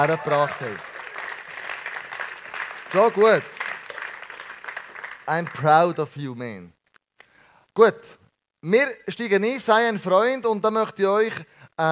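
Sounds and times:
speech: 0.0s - 0.9s, 2.9s - 3.6s, 5.3s - 6.8s, 7.8s - 11.9s
audience applause: 0.0s - 5.7s.

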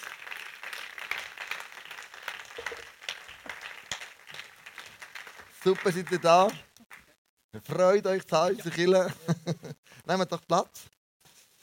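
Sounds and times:
audience applause: 0.0s - 7.2s
speech: 5.6s - 6.7s, 7.7s - 10.9s.

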